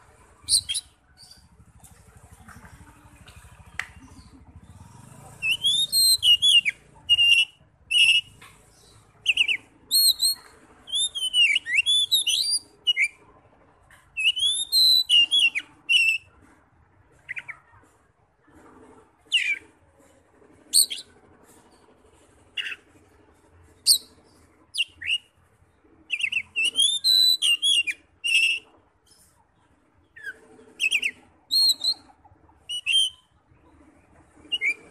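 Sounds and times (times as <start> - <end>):
faint low chatter: 0.0 - 34.8
Oriental magpie-robin singing: 0.3 - 1.6, 2.6 - 13.3, 13.9 - 16.5, 17.1 - 17.8, 19.2 - 19.7, 20.6 - 21.2, 22.5 - 23.0, 23.7 - 29.4, 30.0 - 34.8.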